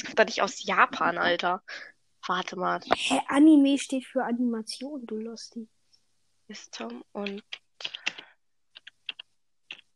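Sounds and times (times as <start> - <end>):
speech: 0.2 - 5.8, 6.5 - 8.0
computer keyboard keys being typed: 6.8 - 9.9.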